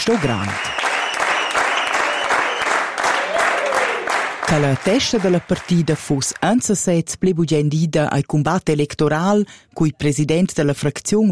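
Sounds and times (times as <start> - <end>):
speech: 0.0 - 0.8, 4.5 - 11.3
applause: 0.0 - 6.7.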